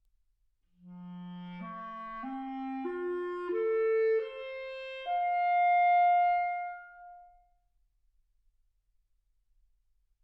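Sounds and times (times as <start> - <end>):
clarinet: 0.8 - 7.5.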